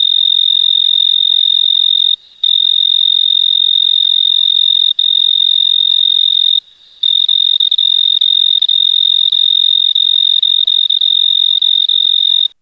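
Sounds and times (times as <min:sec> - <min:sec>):
Oecanthus pictus chirping: 0:00.0 - 0:12.6.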